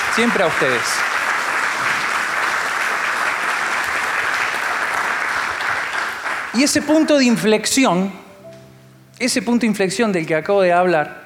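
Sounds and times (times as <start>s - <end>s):
audience applause: 0.0s - 7.0s
speech: 0.2s - 1.1s, 6.6s - 8.2s, 9.2s - 11.2s.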